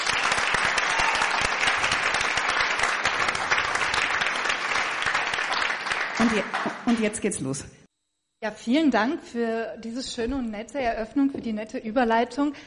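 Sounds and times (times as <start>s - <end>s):
audience applause: 0.0s - 7.0s
speech: 6.3s - 7.8s, 8.4s - 12.6s.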